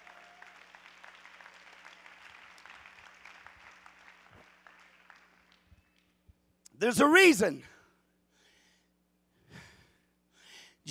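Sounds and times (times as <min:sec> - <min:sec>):
audience clapping hands: 0:00.0 - 0:06.2
speech: 0:06.8 - 0:07.7.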